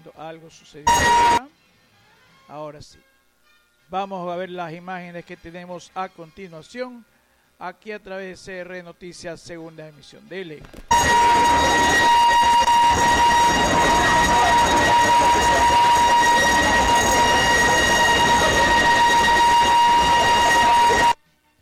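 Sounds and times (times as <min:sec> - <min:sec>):
speech: 0:00.2 - 0:01.5, 0:02.5 - 0:03.1, 0:03.9 - 0:12.2
town earthquake warning alarm: 0:00.9 - 0:01.5, 0:10.9 - 0:21.2.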